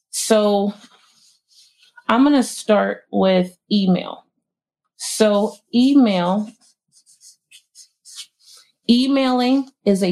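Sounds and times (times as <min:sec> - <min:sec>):
speech: 0:00.2 - 0:00.9, 0:02.1 - 0:04.2, 0:05.0 - 0:06.6, 0:08.9 - 0:10.0
pen or marker scratching while writing a list: 0:05.2 - 0:08.6.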